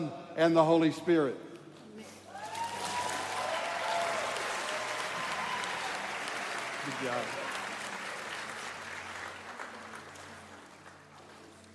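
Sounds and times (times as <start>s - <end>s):
speech: 0.1s - 1.5s, 6.9s - 7.4s
audience applauding after a baptism: 2.3s - 11.7s.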